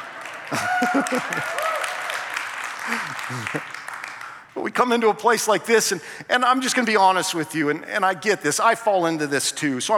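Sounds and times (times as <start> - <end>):
audience applause: 0.0 - 4.4
laughter: 0.5 - 1.6, 2.8 - 3.8
speech: 0.5 - 1.7, 2.9 - 3.8, 4.6 - 9.9.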